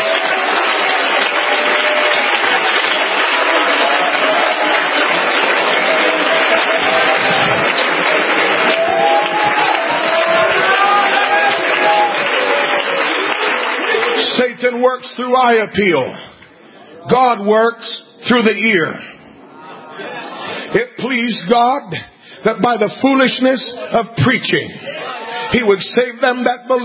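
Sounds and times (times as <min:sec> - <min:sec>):
audience clapping: 0:00.0 - 0:15.5
speech: 0:14.9 - 0:16.3, 0:17.0 - 0:19.1, 0:20.7 - 0:26.8
laughter: 0:19.2 - 0:21.5, 0:22.5 - 0:25.8.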